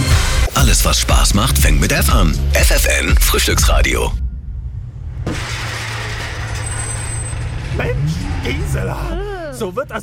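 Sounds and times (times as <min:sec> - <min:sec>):
speech: 0:00.8 - 0:04.2, 0:07.8 - 0:10.0
car engine rumble: 0:02.8 - 0:09.7.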